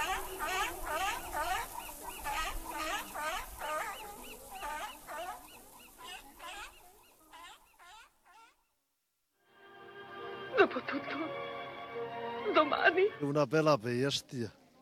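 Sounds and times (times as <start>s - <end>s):
seals barking: 0.0s - 8.6s
speech: 10.7s - 11.5s, 12.4s - 14.6s.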